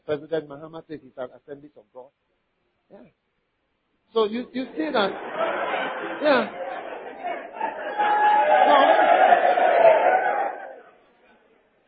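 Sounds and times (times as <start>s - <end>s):
speech: 0.1s - 2.3s, 2.9s - 3.2s, 4.1s - 6.8s
laughter: 4.7s - 10.9s
people shouting in the background: 6.5s - 10.9s.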